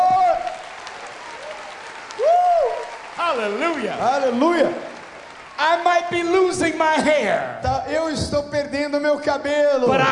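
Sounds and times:
crowd audience applauding: 0.0 - 7.6
speech: 3.4 - 4.9, 5.6 - 10.1.

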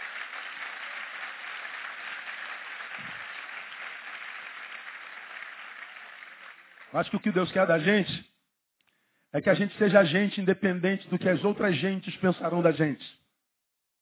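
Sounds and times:
loud audience applause: 0.0 - 7.6
speech: 6.9 - 8.3, 9.3 - 13.2.

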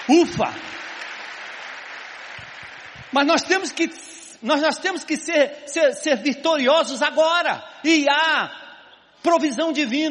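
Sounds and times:
crowd applauding: 0.0 - 3.9
speech: 0.1 - 0.7, 3.1 - 8.6, 9.2 - 10.0.

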